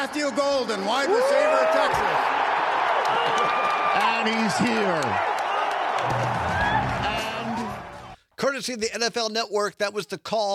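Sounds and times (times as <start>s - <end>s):
speech: 0.0s - 2.4s, 3.1s - 5.4s, 6.0s - 6.8s, 8.4s - 10.5s
crowd roaring and cheering at the NFL Draft: 0.0s - 8.2s.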